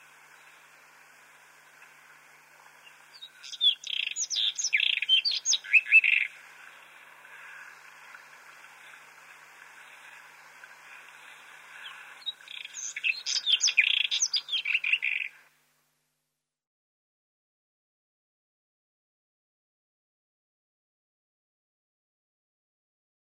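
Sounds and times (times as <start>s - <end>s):
White-throated robin song of chirps, slurred whistles and buzzy trill: 2.7s - 15.5s.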